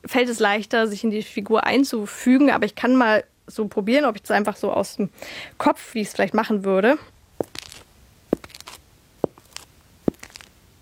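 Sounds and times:
speech: 0.1 - 7.5
foley footsteps, sad melancholic walk: 7.4 - 10.7.

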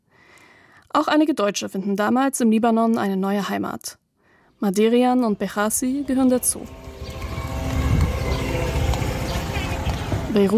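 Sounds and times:
speech: 1.0 - 4.0, 4.6 - 6.8, 10.4 - 10.5
Israeli drones buzzing while circling over the city: 5.6 - 10.5.

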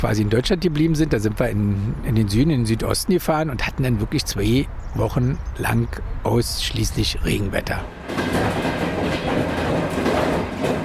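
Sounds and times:
speech: 0.0 - 9.2
train rolling along rails: 7.5 - 10.8
train wheels clickety-clack: 7.8 - 10.8.

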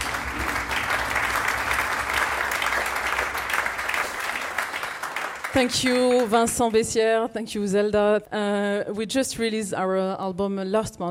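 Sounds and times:
audience applause for technical staff: 0.0 - 6.6
speech: 5.5 - 11.0.

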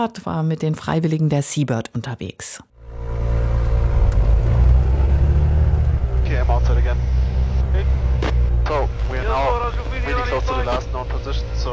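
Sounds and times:
speech: 0.0 - 3.1, 6.5 - 7.2, 8.7 - 11.7
small twin-engine propeller plane engine: 2.8 - 11.7.

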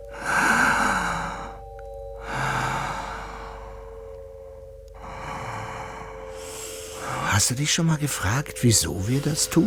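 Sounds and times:
slow audible breathing in and out: 0.0 - 7.4
speech: 7.4 - 9.6.

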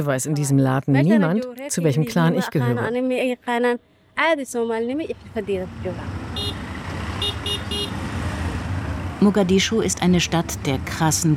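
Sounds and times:
speech: 0.0 - 6.2, 9.2 - 11.3
dense street traffic with rickshaws and trucks at busy intersection: 2.4 - 11.3
vehicle horn toots: 6.3 - 8.5.

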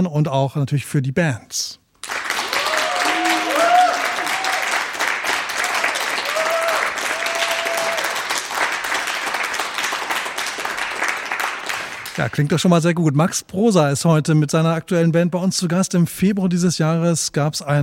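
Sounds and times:
speech: 0.0 - 1.8, 12.2 - 17.8
studio audience applause: 2.0 - 12.5.

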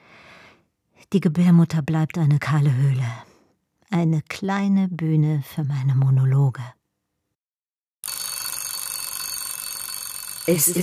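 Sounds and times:
speech: 1.1 - 3.3, 3.9 - 6.8, 10.4 - 10.8
alarm clock ringing: 8.0 - 10.8.

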